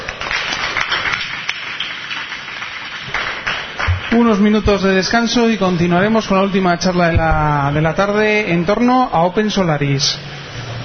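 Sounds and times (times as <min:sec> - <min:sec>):
audience applause: 0:00.0 - 0:04.6
speech: 0:04.1 - 0:10.3.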